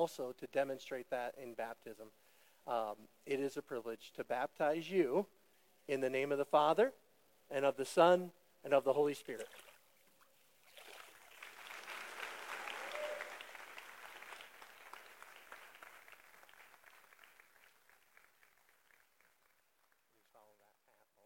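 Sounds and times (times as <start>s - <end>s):
speech: 0.0s - 9.6s
audience applauding after baptism: 11.3s - 19.6s.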